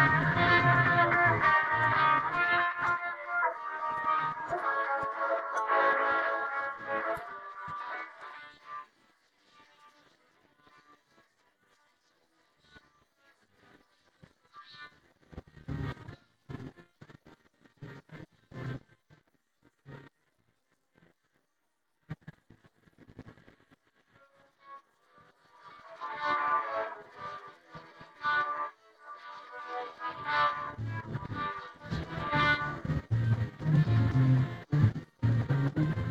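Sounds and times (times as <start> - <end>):
guitar: 0.0 - 8.2, 25.8 - 36.0.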